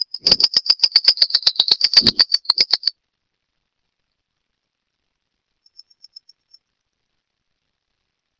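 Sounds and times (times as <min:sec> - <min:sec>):
Phleochryptes melanops calling: 0:00.2 - 0:00.5, 0:01.8 - 0:02.8.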